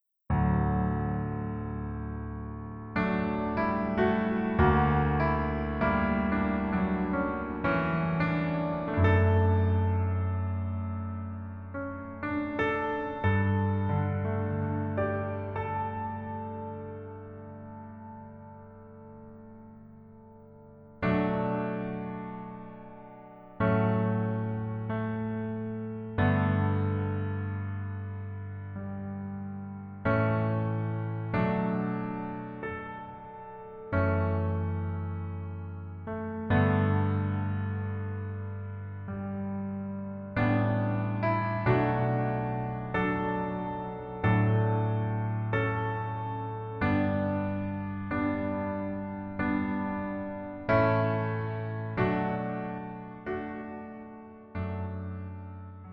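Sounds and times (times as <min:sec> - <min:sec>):
piano version transposed down one key: 0:00.3 - 0:55.9.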